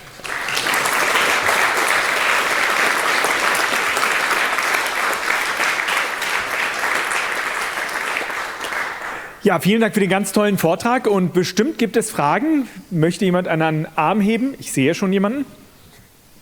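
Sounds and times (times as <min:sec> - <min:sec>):
audience applause: 0:00.0 - 0:09.4
speech: 0:09.5 - 0:15.6.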